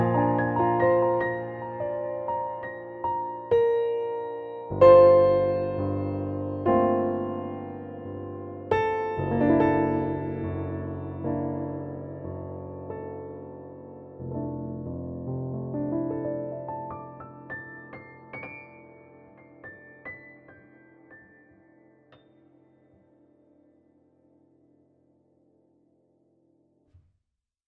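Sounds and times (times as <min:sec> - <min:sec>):
piano: 0:00.0 - 0:27.1.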